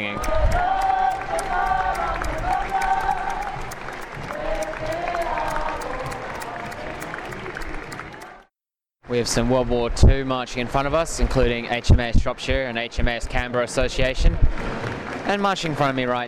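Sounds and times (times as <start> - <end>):
speech: 0.0 - 0.4, 9.1 - 16.2
thunderous applause from parade crowd: 0.0 - 8.5.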